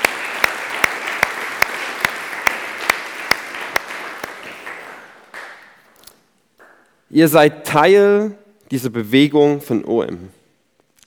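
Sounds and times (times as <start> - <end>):
audience applause: 0.0 - 5.9
speech: 7.1 - 10.4.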